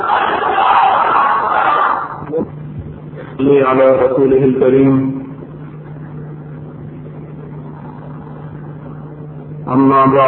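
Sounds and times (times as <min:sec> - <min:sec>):
crowd shouting Allahu Akbar in reply to a takbir call at Darul Ifta wal Irshad: 0:00.0 - 0:02.3
speech: 0:03.4 - 0:05.2, 0:09.7 - 0:10.2.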